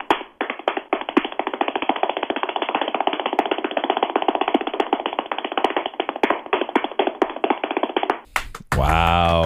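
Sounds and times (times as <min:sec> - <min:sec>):
one person clapping hands: 0:00.0 - 0:09.4.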